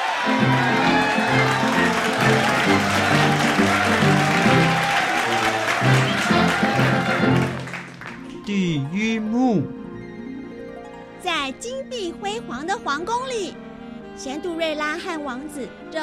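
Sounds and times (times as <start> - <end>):
applause: 0.0 - 8.5
speech: 8.6 - 9.8, 11.4 - 13.6, 14.2 - 16.0.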